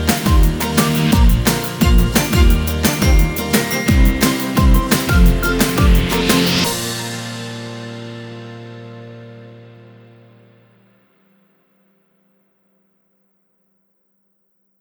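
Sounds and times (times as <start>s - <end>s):
fun energetic music: 0.0s - 7.6s.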